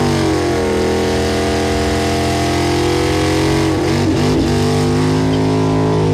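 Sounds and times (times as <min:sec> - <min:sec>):
overdrive distortion: 0:00.0 - 0:06.1.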